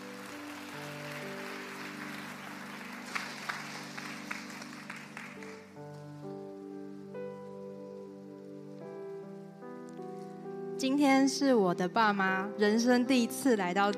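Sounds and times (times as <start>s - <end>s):
audience applause: 0.0s - 5.8s
speech: 10.8s - 13.9s.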